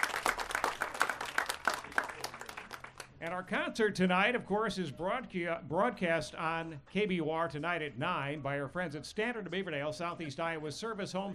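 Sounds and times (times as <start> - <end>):
audience applause: 0.0 - 3.1
speech: 3.2 - 11.3.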